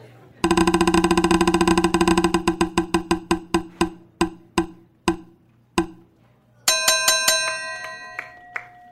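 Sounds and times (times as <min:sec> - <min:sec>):
prize wheel spinning and clicking: 0:00.4 - 0:06.0.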